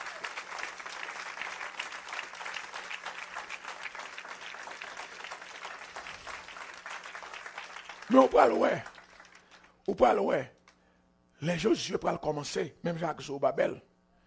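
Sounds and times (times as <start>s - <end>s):
audience applause: 0.0s - 9.8s
speech: 8.1s - 8.9s, 9.9s - 10.6s, 11.4s - 13.9s.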